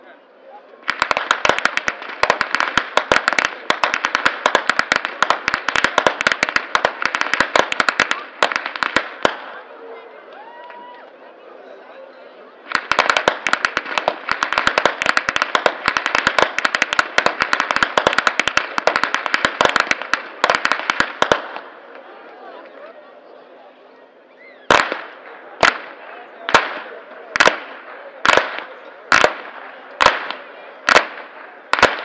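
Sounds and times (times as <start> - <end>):
whip cracking in Flachgau: 0.9 - 9.5, 12.7 - 21.6, 24.7 - 32.0.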